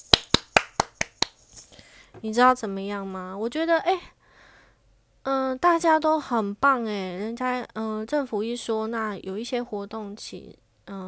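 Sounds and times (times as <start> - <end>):
hand clapping: 0.0 - 1.7
speech: 2.2 - 4.2, 5.2 - 11.0.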